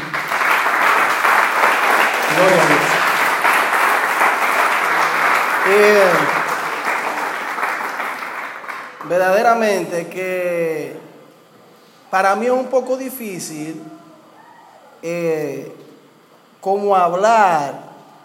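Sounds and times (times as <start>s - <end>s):
audience applause: 0.0s - 9.2s
speech: 2.4s - 2.9s, 5.7s - 6.3s, 9.2s - 11.0s, 12.1s - 14.0s, 15.0s - 15.8s, 16.6s - 17.9s.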